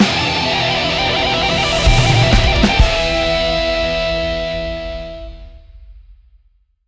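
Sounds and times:
boss death riff: 0.1 - 5.2.

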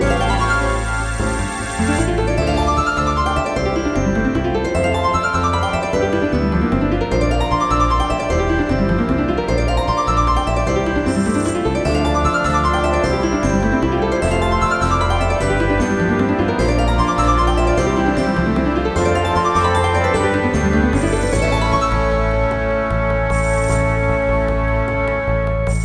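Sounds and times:
harp: 0.0 - 25.8.

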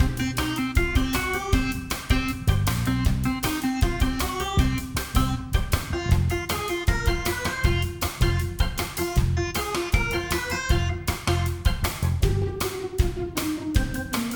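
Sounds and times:
city platformer game music: 0.0 - 14.3.

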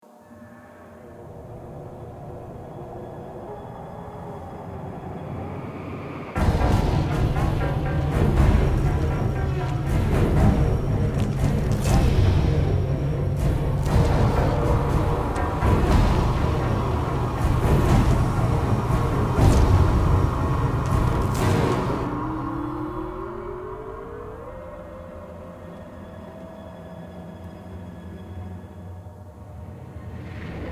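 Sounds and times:
street combat music: 6.4 - 23.4.

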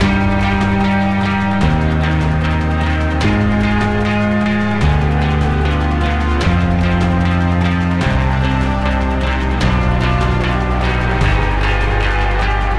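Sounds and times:
boss combat victory music: 0.0 - 12.7.

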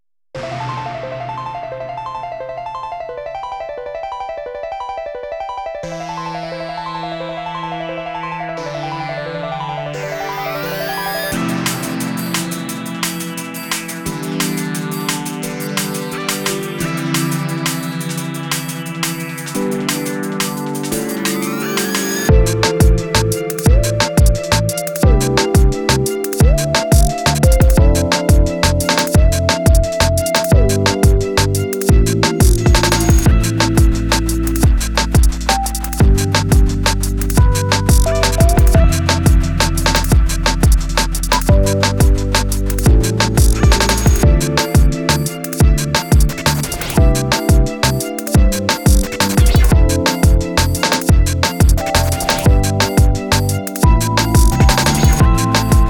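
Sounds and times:
instrumental remix: 0.3 - 55.8.

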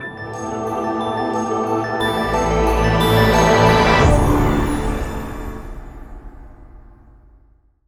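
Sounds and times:
crystal jingle: 0.0 - 5.9.

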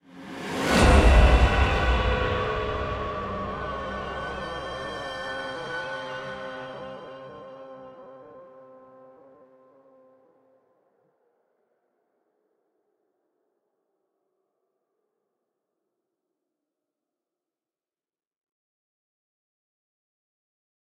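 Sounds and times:
string instrument: 0.0 - 10.8.

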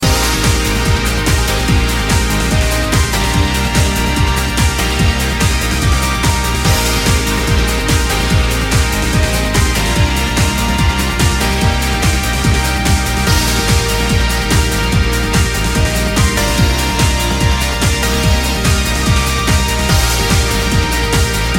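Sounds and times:
background music: 0.0 - 21.5.

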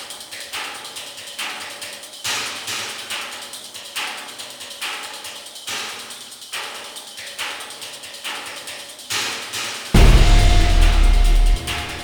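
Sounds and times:
suspense music: 10.0 - 12.0.

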